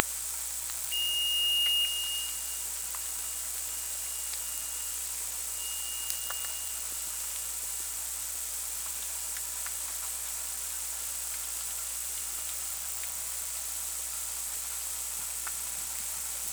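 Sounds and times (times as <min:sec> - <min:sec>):
sonar ping: 0:00.9 - 0:05.0, 0:05.6 - 0:06.9.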